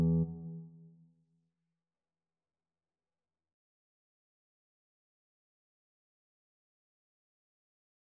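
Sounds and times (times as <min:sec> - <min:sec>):
guitar piece: 0:00.0 - 0:00.6.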